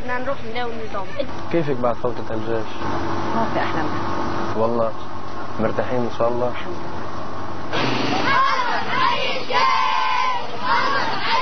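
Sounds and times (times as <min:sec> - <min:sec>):
speech: 0:00.1 - 0:07.0
crowd chanting in the streets: 0:07.8 - 0:11.4.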